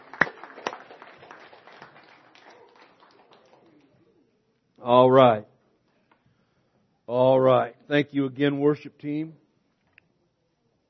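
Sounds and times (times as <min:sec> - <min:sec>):
audience clapping hands: 0:00.0 - 0:04.0
speech: 0:04.8 - 0:05.5, 0:07.1 - 0:09.4.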